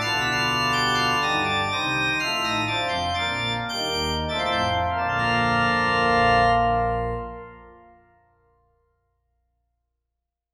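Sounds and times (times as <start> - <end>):
church organ minuet, reverberated: 0.0 - 8.4.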